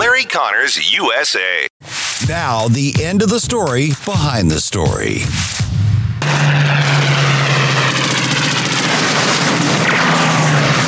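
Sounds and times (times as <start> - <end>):
speech: 0.2 - 6.8
aircraft engine roar in a radio drama: 5.2 - 10.8.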